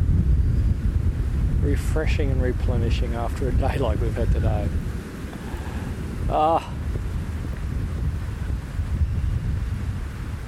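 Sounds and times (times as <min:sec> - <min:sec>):
summer thunderstorm rain: 0:00.0 - 0:10.4
speech: 0:01.7 - 0:05.0, 0:06.3 - 0:06.8.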